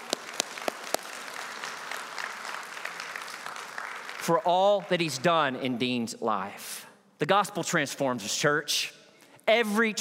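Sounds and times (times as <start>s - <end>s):
audience applause: 0.0s - 5.5s
speech: 4.2s - 9.9s.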